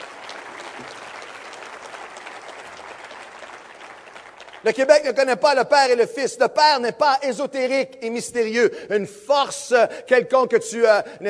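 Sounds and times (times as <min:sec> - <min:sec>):
audience applauding: 0:00.0 - 0:05.0
speech: 0:04.6 - 0:11.2.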